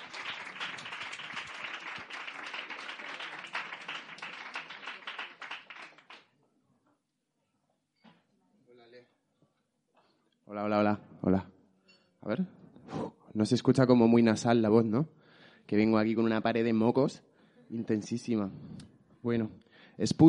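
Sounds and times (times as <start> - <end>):
audience applause: 0.0 - 6.3
speech: 10.5 - 11.5, 12.2 - 12.6, 13.4 - 20.2.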